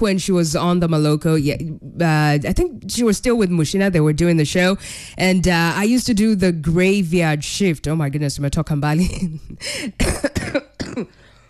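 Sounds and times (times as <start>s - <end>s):
speech: 0.0s - 11.2s
person with flu coughing: 9.7s - 11.3s.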